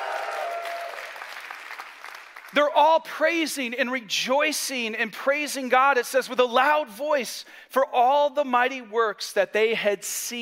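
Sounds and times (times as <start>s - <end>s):
audience cheering: 0.0s - 1.8s
audience applauding: 0.0s - 2.6s
speech: 2.5s - 10.3s.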